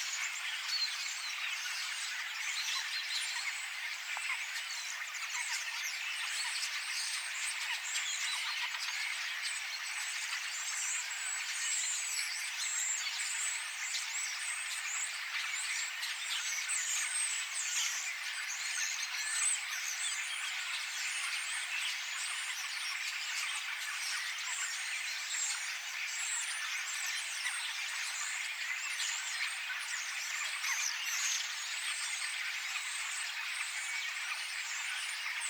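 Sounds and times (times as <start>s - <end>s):
flock of starlings singing in chorus: 0.0s - 35.4s.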